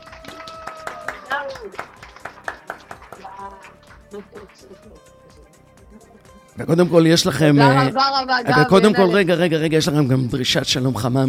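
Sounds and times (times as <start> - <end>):
audience clapping: 0.0 - 5.4
speech: 1.5 - 2.0, 3.4 - 11.2.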